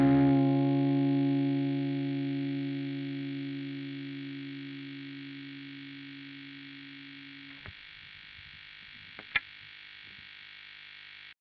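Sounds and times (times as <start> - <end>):
guitar: 0.0 - 7.8.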